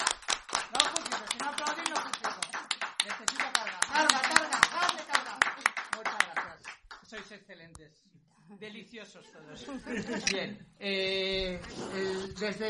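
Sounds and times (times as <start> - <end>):
audience applause after a talk on horror and gore in popular culture: 0.0 - 6.9
speech: 7.4 - 12.6
laughter: 9.4 - 10.6.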